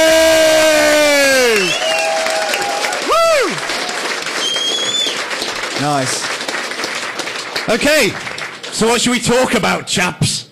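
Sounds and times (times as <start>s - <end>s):
whoops and sliding cheers: 0.0s - 5.2s
crowd clapping for bar staff: 0.0s - 9.8s
speech: 5.9s - 6.3s, 7.7s - 10.4s.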